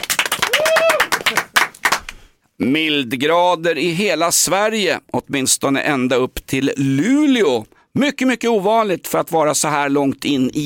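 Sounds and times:
applause: 0.0s - 2.3s
speech: 2.6s - 10.6s.

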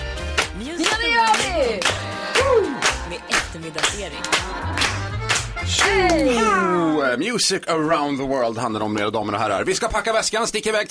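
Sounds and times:
hand clapping: 0.0s - 6.5s
speech: 3.6s - 4.8s, 5.7s - 10.8s.

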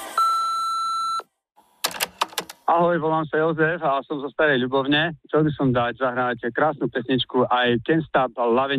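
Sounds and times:
answering machine beep: 0.2s - 1.3s
speech: 2.7s - 8.7s.

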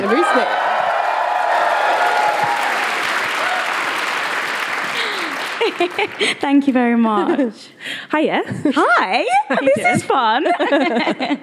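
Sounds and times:
audience cheering and applause: 0.0s - 6.4s
laughter: 4.8s - 6.4s, 9.4s - 11.4s
speech: 5.8s - 11.4s.

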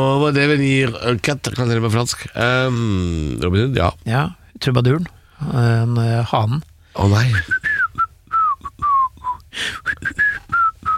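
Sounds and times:
speech: 0.0s - 7.7s, 9.5s - 10.2s
person whistling a cartoon melody: 7.3s - 10.9s.

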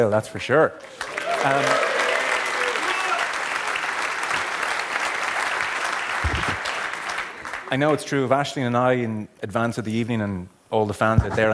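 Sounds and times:
speech: 0.0s - 1.9s, 7.7s - 11.5s
crowd clapping and cheering: 0.8s - 8.0s.

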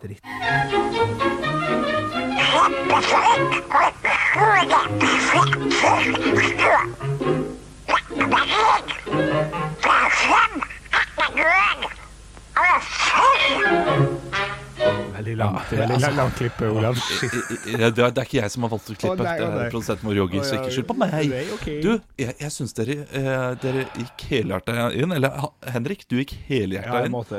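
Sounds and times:
speech: 0.0s - 1.5s, 2.6s - 7.5s, 15.3s - 27.3s
person imitating Donald Duck's voice: 2.3s - 7.0s, 7.9s - 14.6s
laughter: 15.6s - 18.1s.

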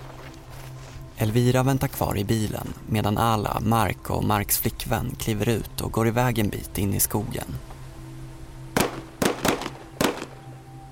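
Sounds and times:
speech: 1.2s - 7.7s
gunshots in a forest: 8.8s - 10.4s.

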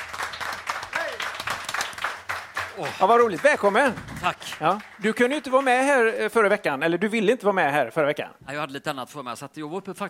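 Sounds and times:
applause: 0.0s - 6.2s
speech: 2.8s - 10.0s.

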